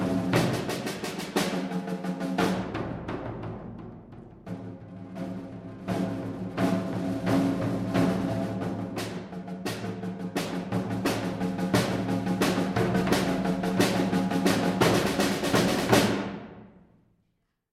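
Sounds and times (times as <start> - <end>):
percussion duet: 0.0 - 16.8.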